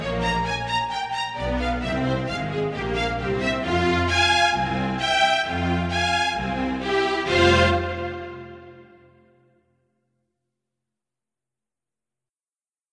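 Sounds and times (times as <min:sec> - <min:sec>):
instrumental music: 0:00.0 - 0:09.5.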